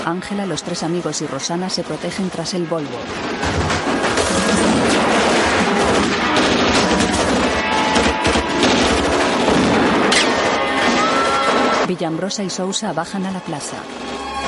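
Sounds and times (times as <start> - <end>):
speech: 0.0 - 7.1, 11.9 - 14.3
gunfire from thugs shooting out of a casino: 3.2 - 11.9.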